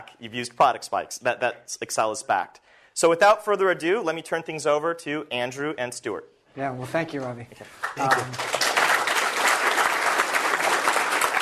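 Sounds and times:
speech: 0.0s - 8.6s
audience clapping: 7.6s - 11.4s.

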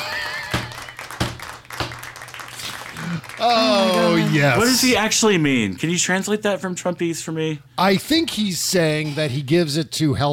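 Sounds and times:
small round of audience applause: 0.0s - 5.4s
speech: 3.1s - 10.3s.

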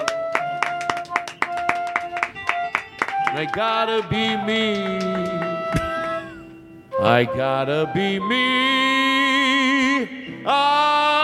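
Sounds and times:
applause of sharp loud claps: 0.0s - 6.2s
sustained musical tones humming: 0.1s - 10.6s
speech: 3.3s - 5.9s, 7.0s - 9.0s, 10.4s - 11.2s.

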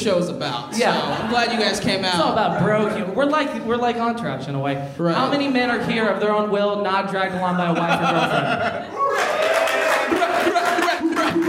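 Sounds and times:
speech: 0.0s - 9.4s
laughter: 0.7s - 1.9s, 7.6s - 11.4s
crowd cheering and whooping: 8.8s - 11.4s
applause: 9.0s - 11.4s.

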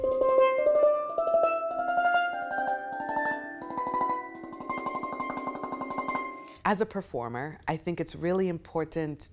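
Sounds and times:
steel pan playing a scale one octave higher: 0.0s - 6.6s
speech: 6.7s - 9.3s.

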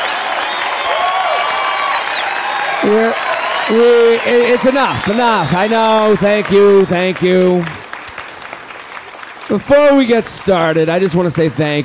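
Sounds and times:
scattered whistles: 0.0s - 2.4s, 3.3s - 4.1s
crowd applauding: 0.0s - 11.5s
cheering voices: 0.0s - 11.8s
speech: 2.9s - 7.8s, 9.5s - 11.8s.

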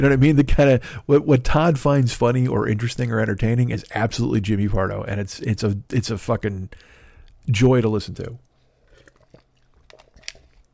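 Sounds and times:
speech: 0.0s - 8.5s
spitting an ice cube into a plastic cup: 8.8s - 10.7s
ice cube clacking in mouth: 8.9s - 10.7s.

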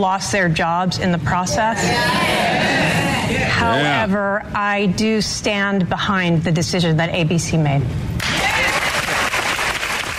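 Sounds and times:
speech: 0.0s - 8.4s
live studio audience applause: 8.2s - 10.1s.

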